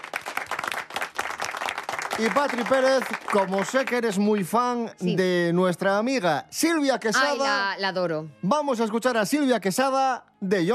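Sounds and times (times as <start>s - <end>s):
applause: 0.0s - 4.8s
speech: 2.2s - 10.7s.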